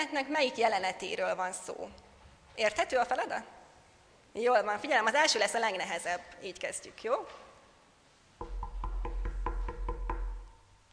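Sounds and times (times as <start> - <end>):
speech: 0.0 - 3.6, 4.4 - 7.4
faint knocking for a Christmas-story guessing game: 8.4 - 10.5.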